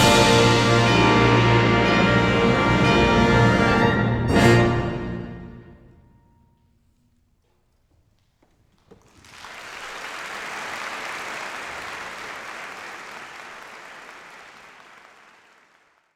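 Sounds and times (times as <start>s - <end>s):
epic fanfare: 0.0s - 6.0s.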